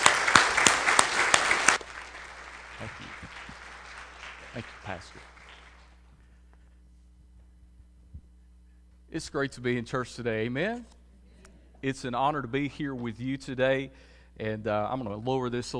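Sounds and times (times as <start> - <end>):
church congregation applauding a visiting preacher: 0.0 - 6.1
low steady hum: 0.0 - 15.7
speech: 4.9 - 5.4, 9.2 - 11.0, 11.8 - 15.7.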